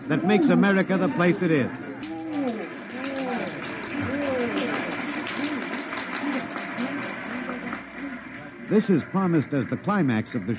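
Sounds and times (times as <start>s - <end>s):
speech: 0.1s - 2.1s, 8.7s - 10.5s
happy laughing crowd along a parade route: 2.1s - 9.3s.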